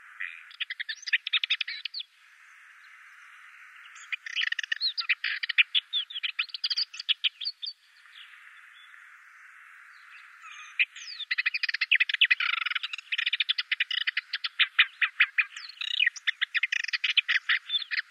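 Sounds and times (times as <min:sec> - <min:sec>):
Ménétries's warbler chattering into a buzzy rattle: 0:00.2 - 0:02.0, 0:03.9 - 0:07.8, 0:10.5 - 0:18.0.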